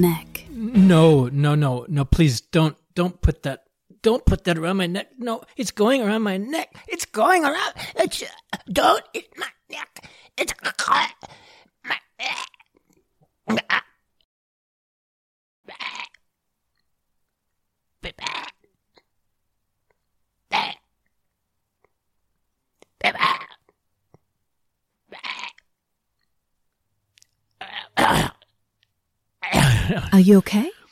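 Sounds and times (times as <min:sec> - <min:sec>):
speech: 0:00.0 - 0:00.3, 0:00.9 - 0:12.6, 0:13.5 - 0:13.8, 0:23.0 - 0:23.4, 0:29.9 - 0:30.8
person coughing after a feather from a feather boa went down the throat: 0:28.0 - 0:28.4, 0:29.5 - 0:30.2.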